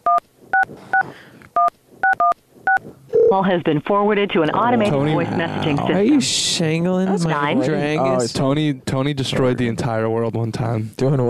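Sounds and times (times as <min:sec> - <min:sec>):
telephone keypad tones as a number is dialed: 0:00.0 - 0:03.3
speech: 0:00.1 - 0:01.3, 0:03.3 - 0:11.2.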